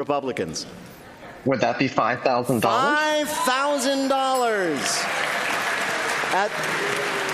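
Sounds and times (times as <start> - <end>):
speech: 0.0 - 5.4, 6.3 - 7.3
convention crowd cheering at a midterm Republican gathering in Dallas: 2.6 - 7.3.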